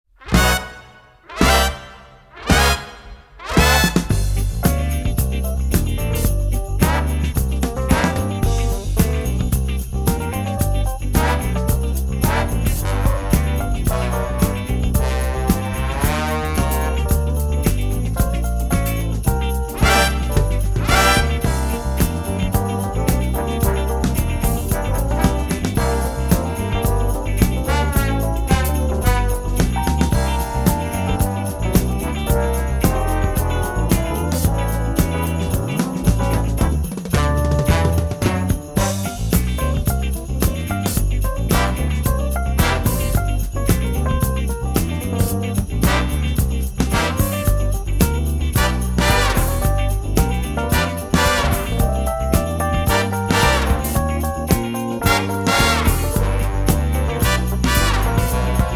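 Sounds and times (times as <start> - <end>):
instrumental music: 0.0 - 58.7.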